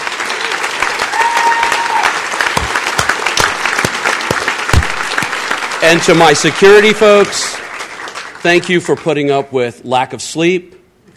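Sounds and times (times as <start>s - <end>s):
audience applause: 0.0s - 9.3s
speech: 5.8s - 7.6s, 8.4s - 10.8s.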